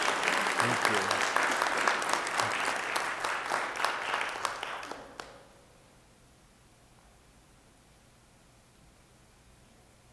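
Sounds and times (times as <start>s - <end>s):
audience applause: 0.0s - 5.4s
speech: 0.7s - 1.3s.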